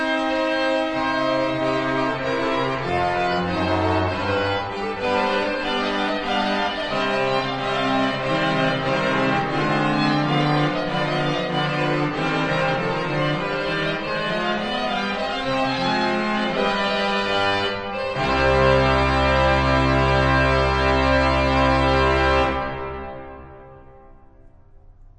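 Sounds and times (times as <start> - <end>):
pipe organ: 0.0 - 24.3.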